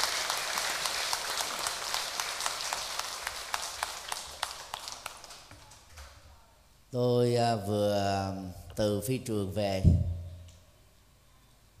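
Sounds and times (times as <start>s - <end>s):
loud audience applause: 0.0s - 5.9s
speech: 6.9s - 10.1s.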